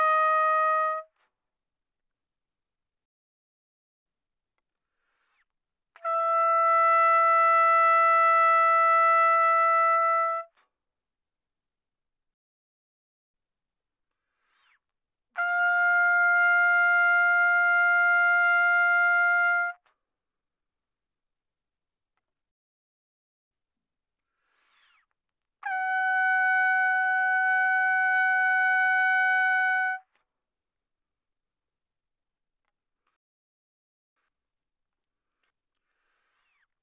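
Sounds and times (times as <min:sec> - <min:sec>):
trumpet soft notes without vibrato: 0:00.0 - 0:01.1, 0:06.0 - 0:10.5, 0:15.4 - 0:19.8, 0:25.6 - 0:30.1.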